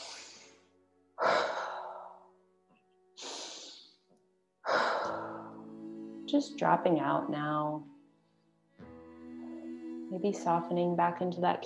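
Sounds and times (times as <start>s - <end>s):
slow deep breaths in a guided breathing exercise: 0.0s - 2.3s, 3.2s - 4.0s, 4.6s - 5.7s
speech: 6.3s - 7.9s, 10.1s - 11.6s.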